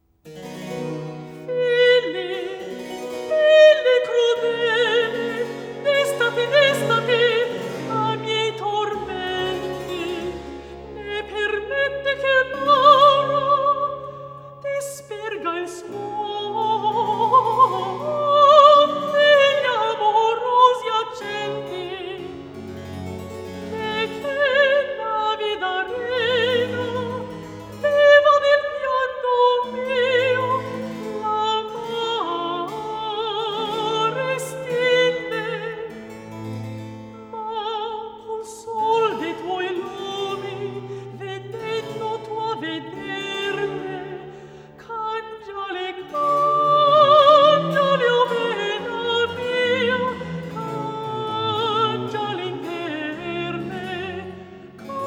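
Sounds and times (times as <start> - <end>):
recitative singing: 0.3 - 55.0.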